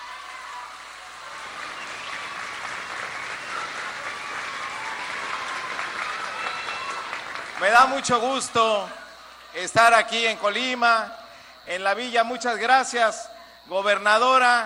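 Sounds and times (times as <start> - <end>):
audience applause: 0.0 - 10.6
speech: 7.6 - 14.6.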